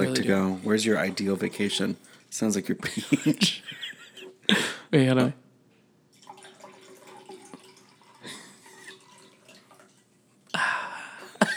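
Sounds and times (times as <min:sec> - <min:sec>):
laughter: 0:00.0 - 0:01.9, 0:02.6 - 0:04.8, 0:11.0 - 0:11.5
drink pouring into a glass: 0:00.0 - 0:03.5, 0:06.1 - 0:10.5
speech: 0:00.0 - 0:03.8, 0:04.5 - 0:05.4.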